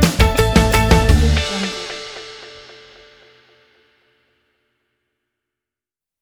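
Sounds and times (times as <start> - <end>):
upbeat happy pop music: 0.0 - 2.8.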